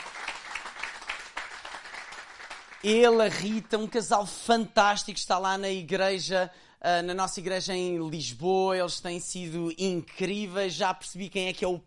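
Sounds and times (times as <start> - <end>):
crowd applause: 0.0 - 3.1
speech: 2.8 - 11.8.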